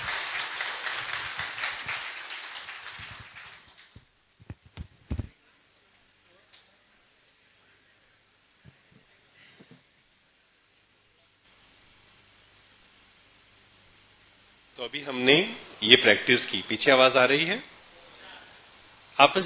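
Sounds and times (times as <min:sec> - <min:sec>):
audience clapping loudly: 0:00.0 - 0:04.1
speech: 0:14.8 - 0:17.7, 0:19.2 - 0:19.4.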